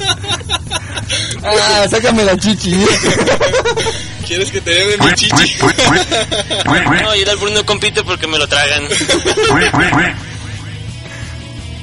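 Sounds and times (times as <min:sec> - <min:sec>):
laughter: 0:00.0 - 0:01.9, 0:02.7 - 0:07.2, 0:08.8 - 0:11.1
speech: 0:01.5 - 0:10.3
person imitating duck quacks: 0:05.0 - 0:07.1, 0:09.5 - 0:10.9.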